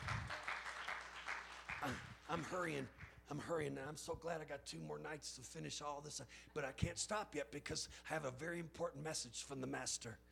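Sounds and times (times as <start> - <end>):
audience hand clapping: 0.0 - 3.2
speech: 1.8 - 10.3.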